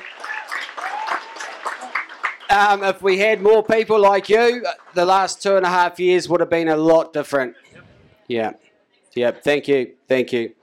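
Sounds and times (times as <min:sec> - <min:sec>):
audience applause: 0:00.0 - 0:05.8
speech: 0:02.5 - 0:10.6.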